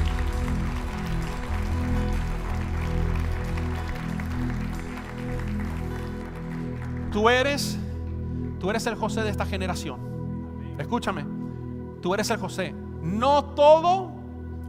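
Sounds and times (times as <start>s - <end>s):
crowd clapping: 0.0s - 7.7s
sustained low musical tones: 0.0s - 14.6s
speech: 7.2s - 7.8s, 8.6s - 10.1s, 10.8s - 11.4s, 12.0s - 14.2s.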